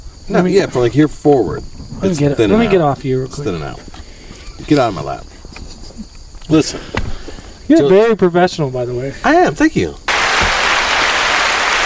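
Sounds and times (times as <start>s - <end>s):
speech: 0.3s - 3.9s, 4.6s - 5.3s, 6.5s - 7.0s, 7.7s - 10.0s
crowd applause sound effect: 10.1s - 11.8s.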